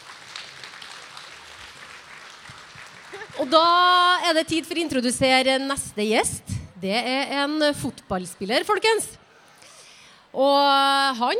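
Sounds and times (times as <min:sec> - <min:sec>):
audience applause: 0:00.0 - 0:03.6
speech: 0:03.2 - 0:09.2, 0:10.3 - 0:11.3.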